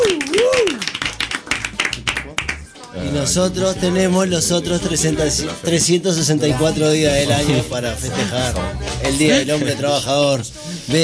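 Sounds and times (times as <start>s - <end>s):
scattered applause: 0.0s - 2.8s
speech: 3.2s - 11.0s.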